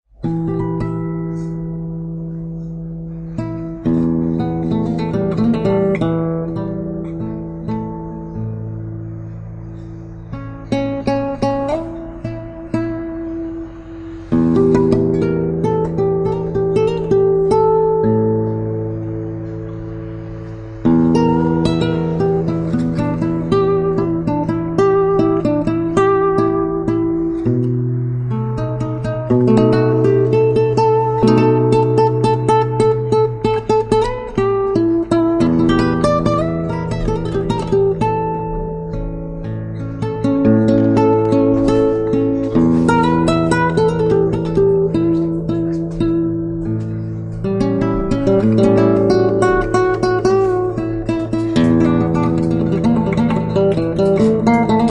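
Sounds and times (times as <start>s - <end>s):
blues guitar: 0.1s - 54.8s.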